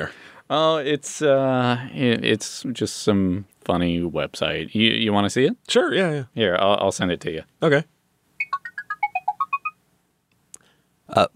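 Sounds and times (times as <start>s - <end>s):
speech: 0.0s - 7.9s, 11.1s - 11.3s
Google Tone Chrome extension chirp of rapid electronic beeps: 8.4s - 9.8s.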